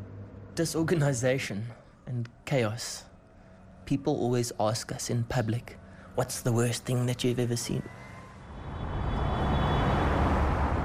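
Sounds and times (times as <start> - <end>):
speech: 0.6 - 3.1, 3.9 - 8.0
cars speeding on a freeway ringing Johannesburg: 7.9 - 10.8.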